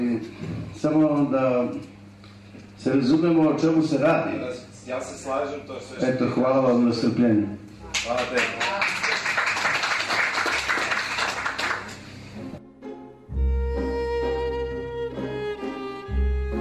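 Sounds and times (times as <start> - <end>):
speech: 0.0 - 2.0, 2.8 - 8.9
audience applause at the end of a talk: 7.8 - 12.1
music: 10.6 - 16.5.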